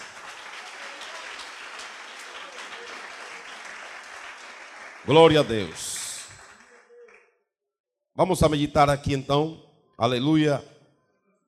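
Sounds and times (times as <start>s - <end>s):
audience clapping hands: 0.0s - 7.3s
speech: 5.0s - 5.9s, 8.2s - 10.7s.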